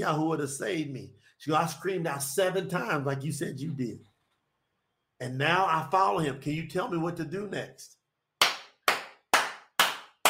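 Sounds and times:
speech: 0:00.0 - 0:04.1, 0:05.2 - 0:08.0
audience clapping: 0:08.4 - 0:10.2.

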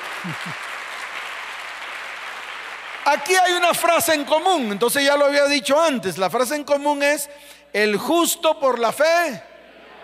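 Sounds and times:
audience applause: 0:00.0 - 0:04.2
speech: 0:00.2 - 0:00.8, 0:03.1 - 0:09.5.

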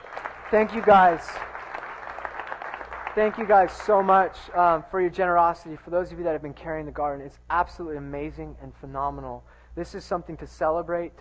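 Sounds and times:
audience applause: 0:00.0 - 0:04.4
speech: 0:00.5 - 0:01.5, 0:03.2 - 0:11.1.

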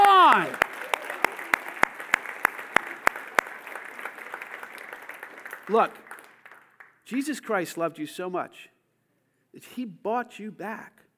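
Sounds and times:
rhythmic sharp claps: 0:00.0 - 0:07.0
speech: 0:05.7 - 0:06.0, 0:07.1 - 0:08.7, 0:09.5 - 0:11.0.

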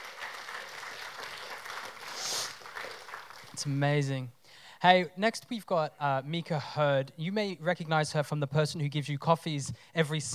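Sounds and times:
audience applause: 0:00.0 - 0:03.6
speech: 0:03.6 - 0:10.3.

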